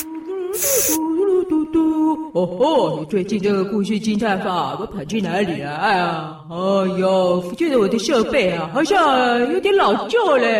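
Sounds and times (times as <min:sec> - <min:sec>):
mosquito repellent sprayed onto a microphone: 0:00.0 - 0:01.0
speech: 0:01.7 - 0:10.5.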